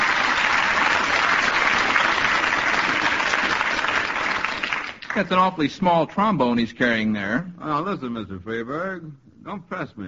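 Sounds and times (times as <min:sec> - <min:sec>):
audience applause: 0:00.0 - 0:05.5
speech: 0:05.2 - 0:10.0.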